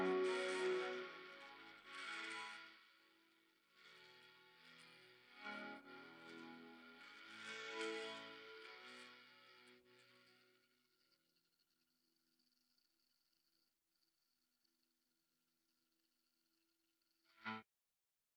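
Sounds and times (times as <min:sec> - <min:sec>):
guitar: 0:00.0 - 0:10.6, 0:17.4 - 0:17.6.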